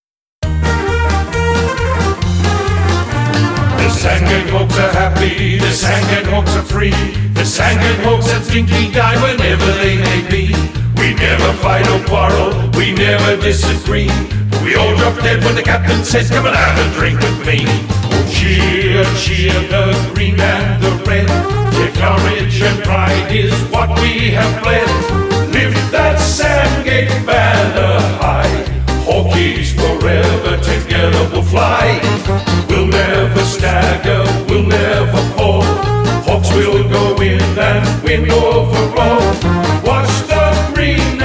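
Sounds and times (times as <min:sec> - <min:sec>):
football club song: 0:00.4 - 0:41.2.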